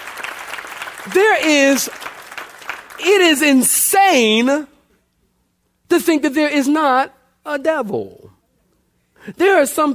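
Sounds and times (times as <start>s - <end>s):
audience clapping hands: 0.0s - 3.8s
speech: 1.0s - 2.1s, 3.0s - 4.7s, 5.9s - 8.3s, 9.2s - 9.9s.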